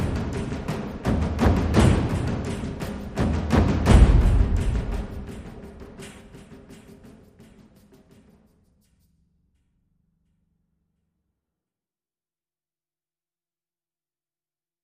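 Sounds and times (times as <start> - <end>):
percussion: 0.0 - 11.2.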